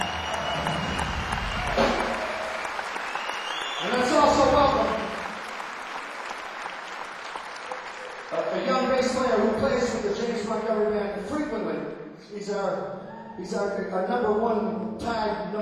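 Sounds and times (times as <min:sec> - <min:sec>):
audience applause: 0:00.0 - 0:09.5
man speaking into a microphone: 0:03.8 - 0:05.1, 0:08.3 - 0:15.5
speech: 0:12.3 - 0:15.5.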